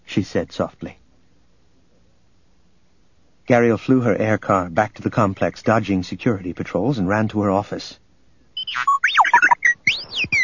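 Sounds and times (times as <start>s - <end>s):
speech: 0.2s - 1.0s, 3.5s - 8.0s, 8.7s - 8.9s
small astromech-style robot droid beeping and warbling while spinning its dome: 8.6s - 10.4s.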